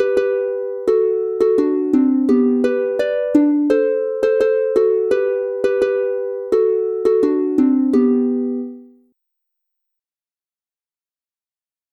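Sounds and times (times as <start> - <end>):
two-voice harp instrumental in G major: 0.0 - 8.9.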